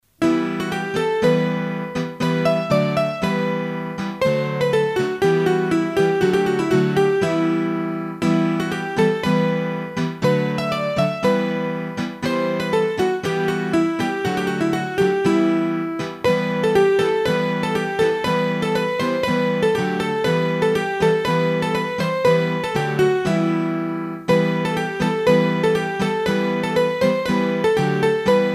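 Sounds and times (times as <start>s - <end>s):
bourree played on hurdy-gurdy: 0.2s - 28.5s.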